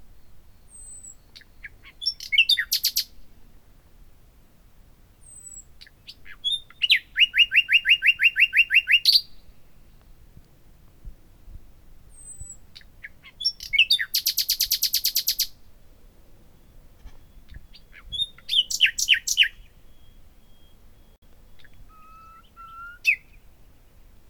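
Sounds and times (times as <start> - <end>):
common nightingale Luscinia megarhynchos singing: 0.2 - 3.2, 5.2 - 10.2, 12.1 - 15.6, 16.4 - 24.1.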